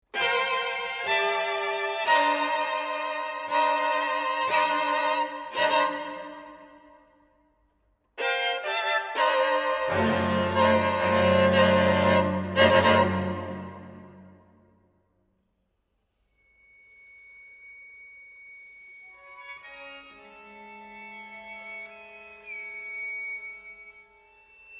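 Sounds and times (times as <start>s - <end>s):
string quartet: 0.1s - 6.8s, 8.2s - 14.4s, 19.2s - 24.7s.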